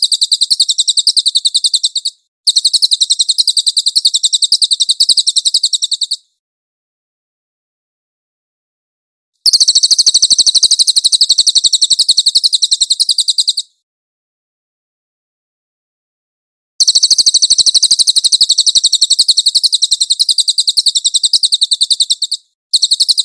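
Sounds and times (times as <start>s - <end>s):
song: 0.0s - 6.3s, 9.4s - 13.8s, 16.8s - 23.2s.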